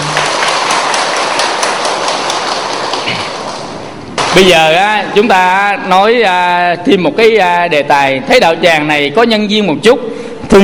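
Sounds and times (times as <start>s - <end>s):
round of applause: 0.0s - 4.8s
speech: 4.4s - 10.6s.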